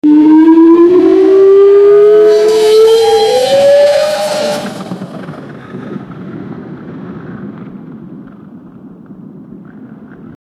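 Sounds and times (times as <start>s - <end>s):
large object rolling: 0.4s - 8.8s.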